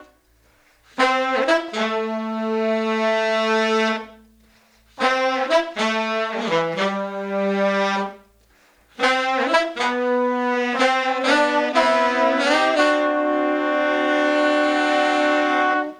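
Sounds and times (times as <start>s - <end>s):
70s analog funk horns: 0.9s - 4.2s, 4.9s - 8.3s, 8.9s - 15.9s.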